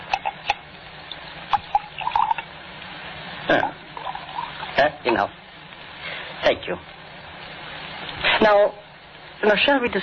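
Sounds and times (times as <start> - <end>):
drink being poured: 0.0 - 2.5, 3.5 - 5.1
speech: 3.5 - 3.8, 4.8 - 5.4, 6.4 - 6.9, 8.4 - 8.8, 9.4 - 10.0.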